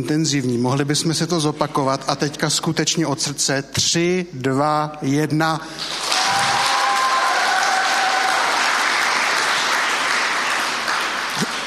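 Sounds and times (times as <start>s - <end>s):
speech: 0.0s - 6.3s
audience applause: 5.8s - 11.6s.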